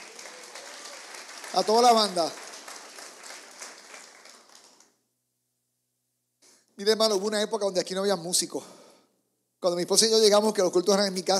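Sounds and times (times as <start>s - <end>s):
audience applause: 0.0s - 4.9s
speech: 1.5s - 2.4s, 6.8s - 8.8s, 9.6s - 11.3s.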